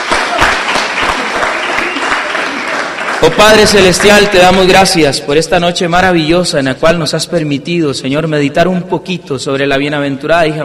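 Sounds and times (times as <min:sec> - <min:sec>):
audience applause: 0:00.0 - 0:04.4
speech: 0:03.2 - 0:10.6.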